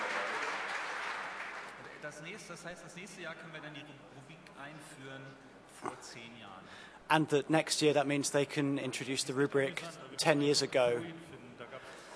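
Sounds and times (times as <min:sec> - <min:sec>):
audience applause: 0:00.0 - 0:02.0
speech: 0:02.1 - 0:11.4.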